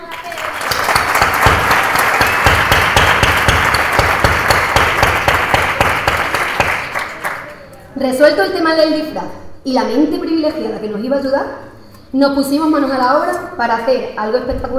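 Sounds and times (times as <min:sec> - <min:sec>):
audience applause: 0:00.0 - 0:07.6
speech: 0:08.1 - 0:14.7.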